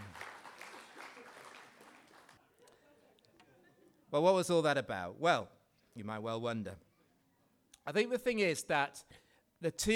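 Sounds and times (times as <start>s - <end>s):
round of applause from a group: 0.0s - 2.4s
speech: 4.1s - 6.9s, 7.9s - 9.9s.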